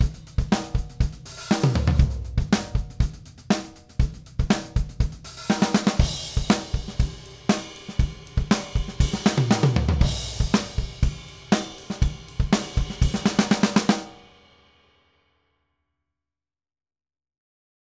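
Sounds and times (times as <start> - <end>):
full drum kit: 0.0 - 14.5.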